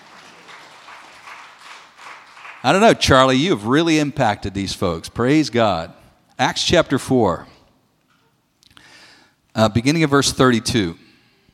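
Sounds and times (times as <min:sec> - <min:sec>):
audience clapping: 0:00.0 - 0:03.3
speech: 0:02.6 - 0:07.5, 0:09.6 - 0:11.0.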